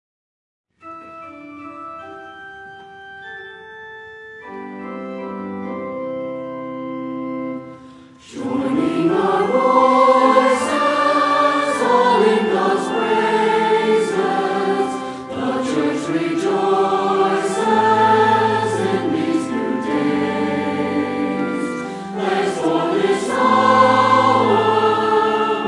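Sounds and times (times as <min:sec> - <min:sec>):
voices singing together: 0:08.2 - 0:25.6.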